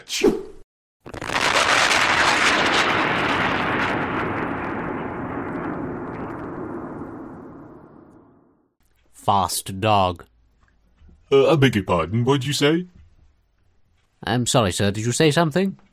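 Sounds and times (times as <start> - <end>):
speech: 0.0 - 0.4, 9.3 - 10.3, 11.3 - 13.0, 14.2 - 15.9
sonic boom from supersonic frisbee throw: 1.1 - 8.7.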